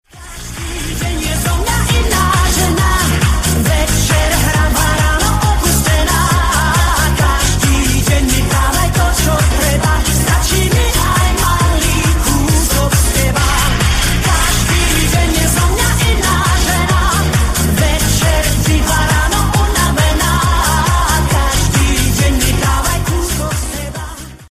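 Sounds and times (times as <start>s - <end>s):
Arabic music: 0.0s - 24.5s.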